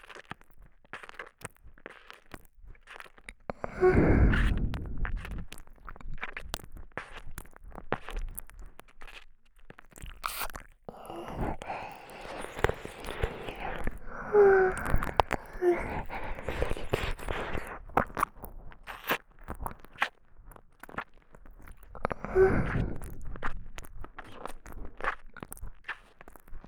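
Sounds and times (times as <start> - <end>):
sucking sounds: 3.5 - 5.3, 10.3 - 18.3, 22.0 - 23.5
soft tongue licking: 9.0 - 20.1, 20.8 - 26.6.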